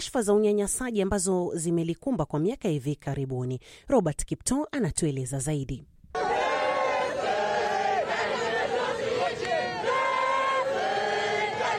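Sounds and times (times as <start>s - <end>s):
speech: 0.0s - 6.3s
crowd at a Paris airport cheering and chanting to welcome Pope Leo: 6.2s - 11.7s.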